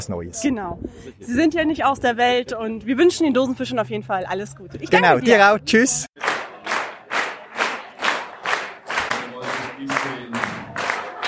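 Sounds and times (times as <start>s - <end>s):
speech: 0.0s - 6.2s
audience clapping: 6.2s - 11.2s.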